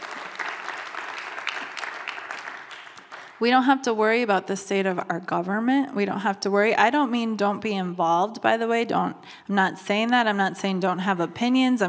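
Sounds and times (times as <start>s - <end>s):
audience clapping: 0.0s - 3.5s
speech: 3.4s - 11.8s.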